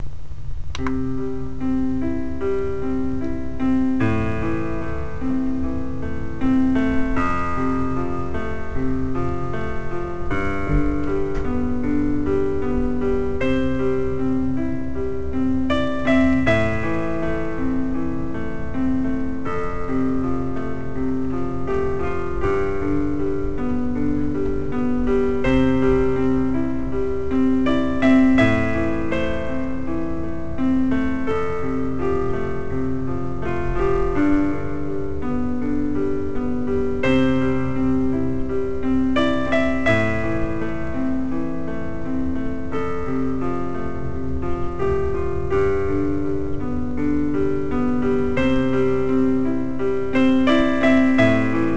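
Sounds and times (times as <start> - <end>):
instrumental music: 0.0 - 51.7.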